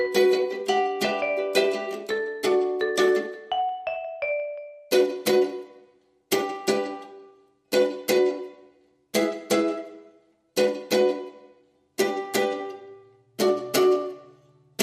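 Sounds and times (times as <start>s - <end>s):
vibraphone: 0.0s - 5.2s
mandolin: 0.0s - 14.8s
ukulele: 0.0s - 14.8s.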